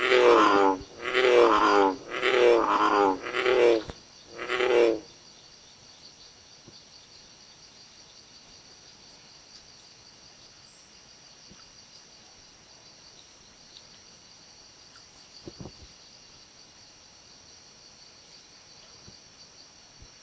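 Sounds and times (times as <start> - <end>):
American bullfrog Lithobates catesbeianus croaking: 0.0 - 5.1.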